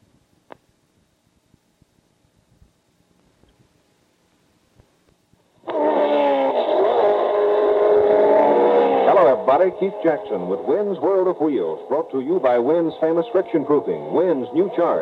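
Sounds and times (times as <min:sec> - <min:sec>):
auto racing car engines roaring: 0:05.6 - 0:15.0
speech: 0:09.6 - 0:15.0.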